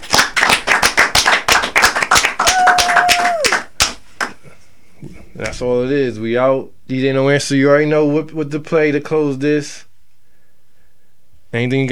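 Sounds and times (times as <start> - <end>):
group clapping in a quick steady rhythm: 0.0 - 4.4
speech: 5.6 - 9.9, 11.5 - 11.9.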